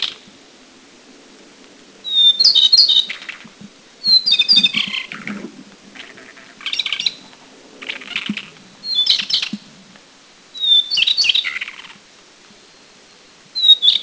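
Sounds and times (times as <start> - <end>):
Taiwan shortwing song of thin high whistles and rapid twittering at Anmashan, Taiwan: 2.0 - 3.4, 4.0 - 5.3, 8.1 - 9.6, 10.5 - 11.9, 12.7 - 14.0.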